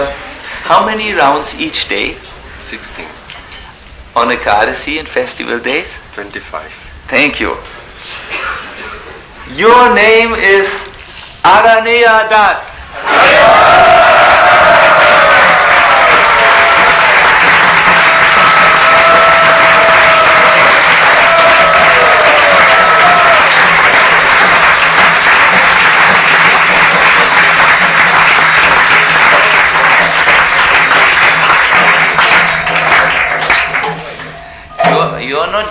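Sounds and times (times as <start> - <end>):
speech: 0.7 - 3.3, 4.2 - 8.6, 9.5 - 14.0
crowd cheering and applauding at a spiritual name-giving ceremony: 12.9 - 34.6.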